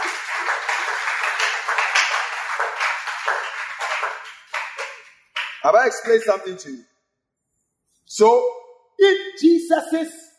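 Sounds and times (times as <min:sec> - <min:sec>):
audience clapping: 0:00.0 - 0:06.2
speech: 0:05.6 - 0:06.9, 0:08.2 - 0:10.2.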